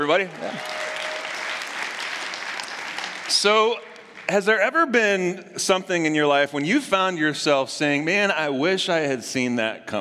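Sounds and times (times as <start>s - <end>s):
speech: 0.0s - 0.8s, 3.3s - 9.9s
audience applause: 0.0s - 4.5s.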